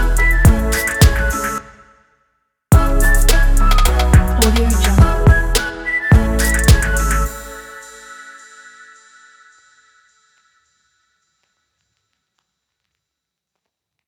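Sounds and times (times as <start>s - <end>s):
hip hop music: 0.0s - 1.9s, 2.7s - 10.4s.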